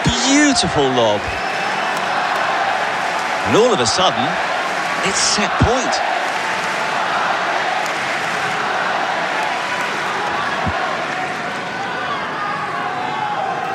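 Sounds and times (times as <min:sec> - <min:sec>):
tennis crowd cheering and applauding after a point: 0:00.0 - 0:13.7
speech: 0:00.6 - 0:01.5, 0:03.4 - 0:06.1.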